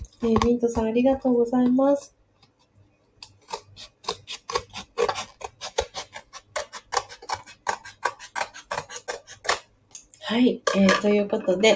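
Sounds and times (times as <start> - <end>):
speech: 0.2 - 2.2, 10.3 - 11.7
scissors cutting open a paper mail envelope: 3.2 - 9.6.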